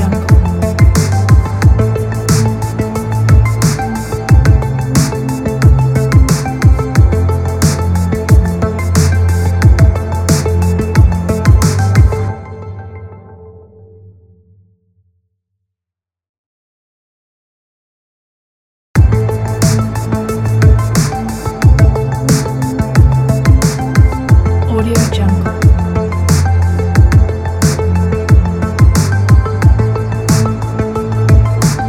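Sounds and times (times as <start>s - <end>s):
80s synth wave music: 0.0s - 14.4s, 19.0s - 31.8s.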